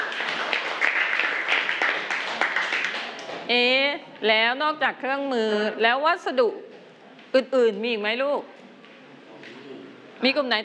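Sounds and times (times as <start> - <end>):
class applauding: 0.0 - 3.5
speech: 3.5 - 6.7, 7.3 - 8.5, 10.2 - 10.6.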